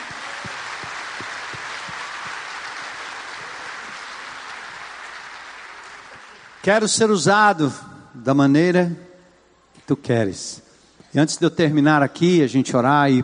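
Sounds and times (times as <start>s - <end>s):
audience applause: 0.0s - 6.8s
speech: 6.6s - 9.0s, 9.9s - 13.2s.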